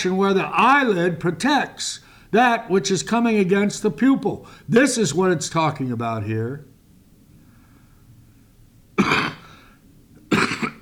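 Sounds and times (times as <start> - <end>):
speech: 0.0 - 6.7
person with a cold coughing: 9.0 - 9.6, 10.3 - 10.8.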